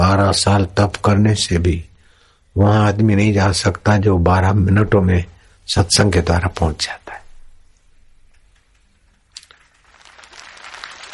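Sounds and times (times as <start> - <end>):
speech: 0.1 - 1.9, 2.6 - 7.2
audience clapping: 9.4 - 11.1.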